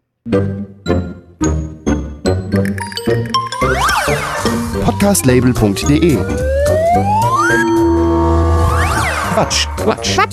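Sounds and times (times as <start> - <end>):
speech: 0.2 - 1.6, 4.9 - 7.8, 9.4 - 10.3
digitally sped-up podcast intro jingle: 2.8 - 10.3.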